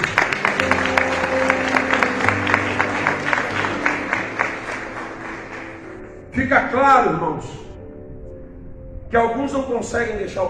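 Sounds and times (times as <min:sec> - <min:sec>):
audience applause: 0:00.0 - 0:06.2
speech: 0:06.4 - 0:07.6, 0:09.1 - 0:10.4.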